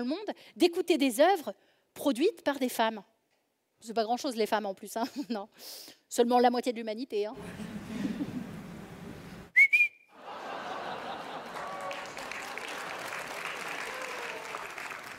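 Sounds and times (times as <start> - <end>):
speech: 0.0 - 3.1, 3.8 - 8.0
laughter: 7.4 - 8.8, 10.2 - 13.5
whistling: 9.5 - 10.1
audience applause: 10.2 - 15.1.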